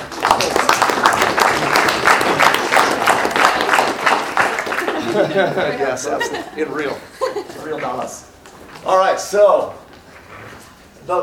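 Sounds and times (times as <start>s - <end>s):
crowd round of applause: 0.0s - 6.3s
laughter: 4.6s - 8.1s
speech: 5.2s - 9.8s.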